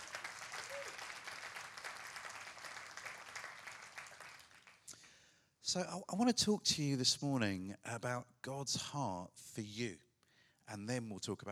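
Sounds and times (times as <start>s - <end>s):
audience applause: 0.0s - 4.9s
speech: 5.7s - 10.0s, 10.7s - 11.4s.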